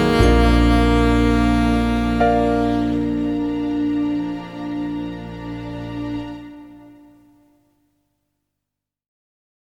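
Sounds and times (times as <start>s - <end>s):
saxophone slow waltz: 0.0s - 7.2s.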